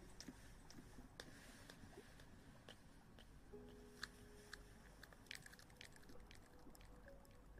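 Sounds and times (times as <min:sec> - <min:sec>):
wet clicks, smacks and crinkly mouth sounds: 0:00.1 - 0:07.4.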